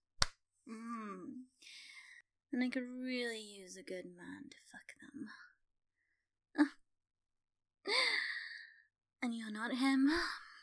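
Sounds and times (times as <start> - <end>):
hand slapping bare skin: 0.2 - 0.4
speech: 2.6 - 5.5, 6.6 - 6.8, 9.2 - 10.5.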